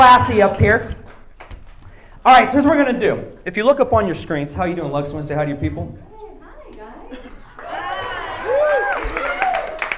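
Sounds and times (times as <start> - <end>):
speech: 0.1 - 1.0, 2.2 - 6.1
cheers and whoops: 7.6 - 9.9
crowd applause: 7.6 - 9.9.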